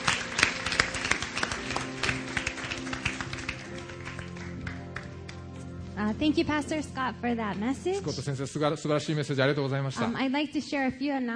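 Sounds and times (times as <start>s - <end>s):
audience clapping: 0.0s - 5.7s
speech: 6.0s - 11.3s.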